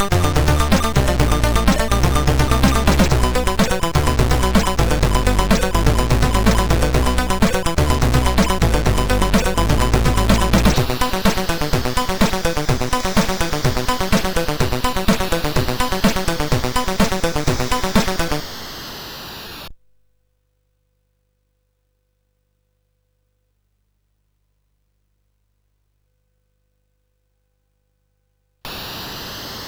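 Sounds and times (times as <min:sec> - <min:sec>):
MOS6581R3 chip song: 0:00.0 - 0:18.4.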